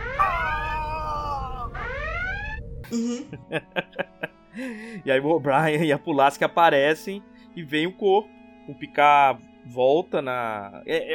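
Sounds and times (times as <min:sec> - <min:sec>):
sci-fi starship alert alarm sound effect: 0:00.0 - 0:02.8
laughter: 0:02.9 - 0:04.8
speech: 0:02.9 - 0:11.1.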